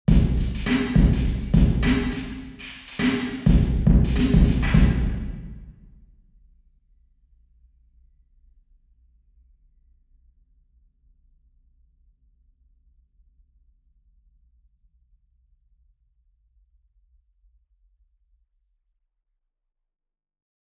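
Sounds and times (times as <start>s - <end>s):
drum in church: 0.1s - 5.9s.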